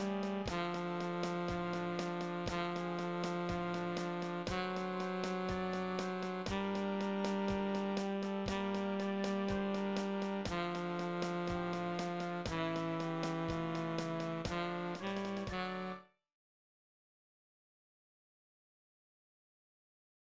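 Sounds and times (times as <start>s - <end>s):
tenor saxophone: 0.0s - 16.1s.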